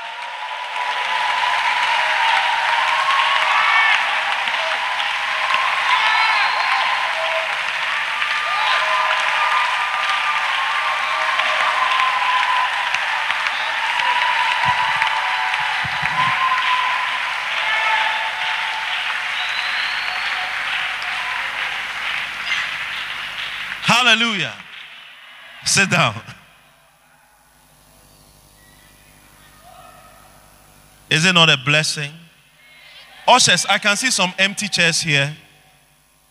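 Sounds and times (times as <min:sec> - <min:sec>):
large crowd clapping: 0:00.0 - 0:26.7
faint cheering: 0:00.0 - 0:27.5
speech: 0:24.1 - 0:24.6, 0:25.7 - 0:26.3, 0:31.1 - 0:32.2, 0:33.3 - 0:35.4.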